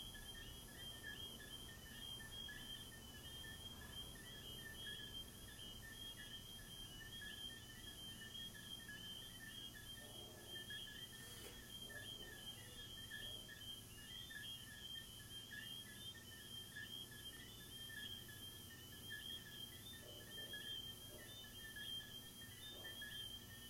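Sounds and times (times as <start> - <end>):
crickets chirping: 0.0 - 23.6.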